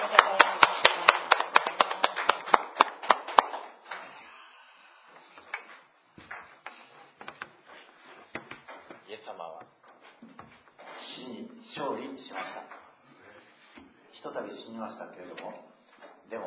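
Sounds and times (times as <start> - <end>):
group clapping: 0.0 - 4.2.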